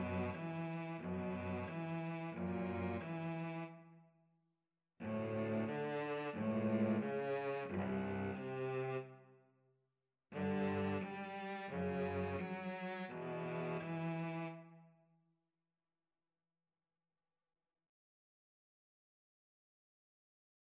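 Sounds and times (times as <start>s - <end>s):
violin and cello duet playing a folk dance: 0.0s - 3.6s, 5.0s - 9.0s, 10.4s - 14.5s.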